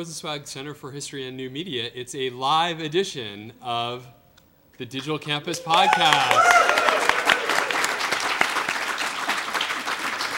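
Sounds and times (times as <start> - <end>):
speech: 0.0 - 4.2, 4.8 - 6.8
live audience applause: 5.5 - 10.3.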